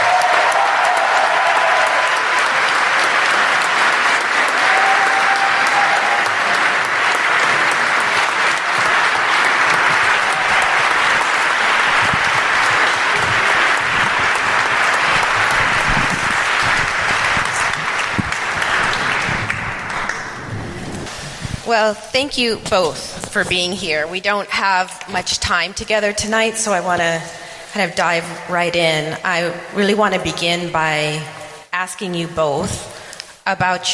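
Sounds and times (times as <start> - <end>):
large audience clapping: 0.0 - 21.6
speech: 21.9 - 32.9, 33.5 - 33.9.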